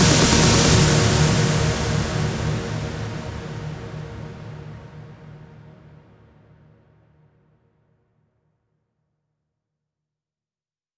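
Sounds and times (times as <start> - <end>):
hands up trance fills: 0.0 - 3.5.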